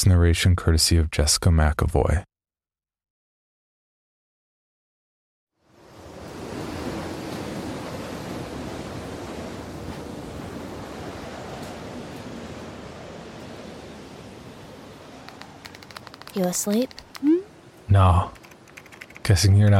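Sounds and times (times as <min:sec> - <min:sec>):
speech: 0:00.0 - 0:02.3, 0:16.4 - 0:18.4, 0:19.2 - 0:19.7
wind howling: 0:05.7 - 0:19.7.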